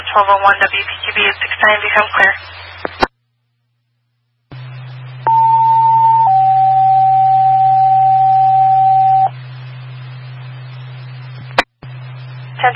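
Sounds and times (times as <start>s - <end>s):
low hum and hiss: 0.0s - 12.7s
speech: 0.2s - 3.0s
paging system test tones: 5.3s - 9.3s.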